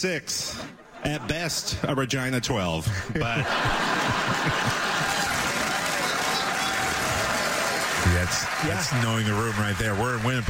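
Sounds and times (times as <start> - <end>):
speech: 0.0 - 4.8, 8.2 - 10.4
laughter: 0.4 - 2.1, 2.8 - 10.4
crowd clapping: 3.6 - 10.4.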